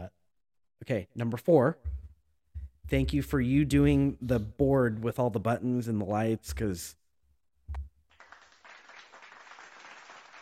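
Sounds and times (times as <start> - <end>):
speech: 0.8 - 2.0, 2.9 - 7.0
low thump: 1.8 - 4.0
applause: 8.1 - 10.4.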